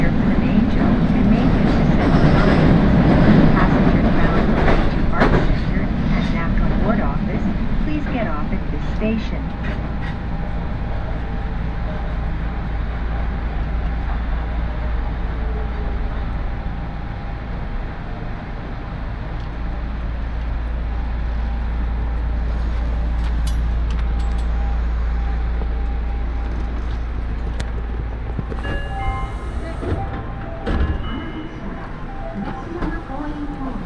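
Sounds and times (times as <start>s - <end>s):
voices: 0.0s - 10.0s, 28.6s - 33.8s
Aonami Line and Higashiyama Line train rumbling in Nagoya: 0.0s - 33.8s.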